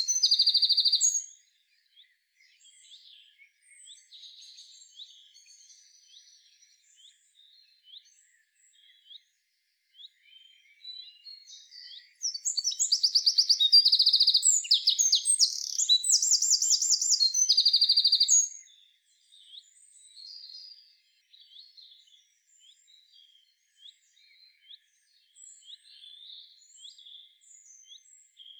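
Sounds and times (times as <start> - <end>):
Eurasian wren song: 0.0 - 1.3, 11.5 - 18.7
other birds chirping: 0.0 - 1.3, 11.8 - 18.7.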